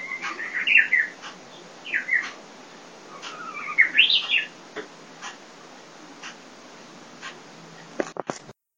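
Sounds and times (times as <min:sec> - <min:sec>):
hokekyo bird song: 0:00.0 - 0:04.6.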